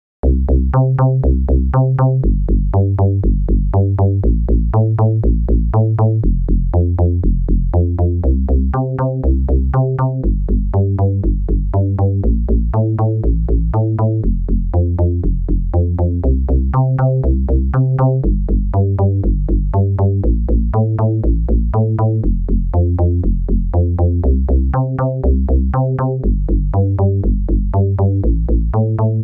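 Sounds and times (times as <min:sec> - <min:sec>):
FM synth bass with chorus: 0:00.2 - 0:29.2.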